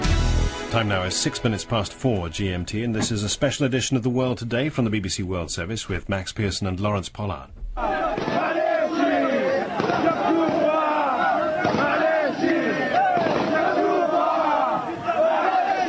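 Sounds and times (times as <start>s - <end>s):
speech: 0.7s - 8.6s
rebel fighters and supporters shouting and chanting in Green Square, Tripoli: 7.7s - 15.8s.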